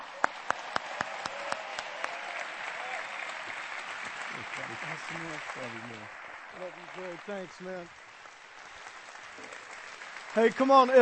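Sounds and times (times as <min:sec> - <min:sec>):
church congregation applause welcoming a guest speaker: 0:00.0 - 0:11.0
speech: 0:04.6 - 0:08.0, 0:10.3 - 0:11.0.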